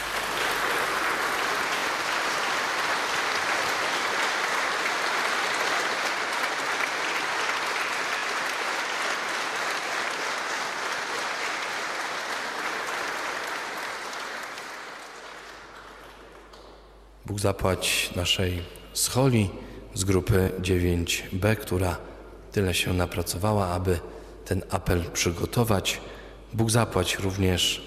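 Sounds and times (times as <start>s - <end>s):
audience applause: 0.0s - 16.8s
speech: 17.3s - 27.8s.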